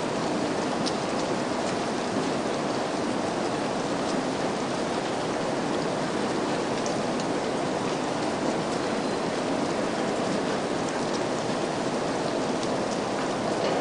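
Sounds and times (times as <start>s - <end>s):
rain: 0.0s - 13.7s.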